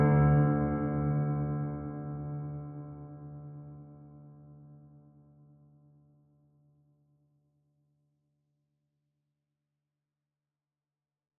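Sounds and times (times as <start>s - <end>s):
piano with big warehouse reverb: 0.0s - 5.9s.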